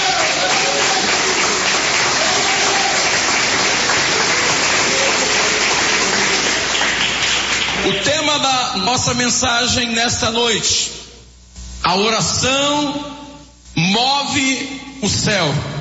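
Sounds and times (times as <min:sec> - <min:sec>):
audience applause: 0:00.0 - 0:08.0
speech: 0:08.4 - 0:11.0, 0:11.9 - 0:13.2, 0:13.8 - 0:15.7.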